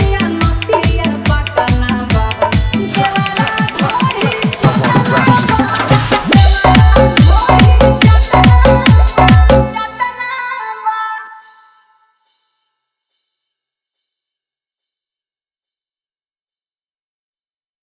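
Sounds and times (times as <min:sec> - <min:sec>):
hard bass dance mix: 0:00.0 - 0:10.7.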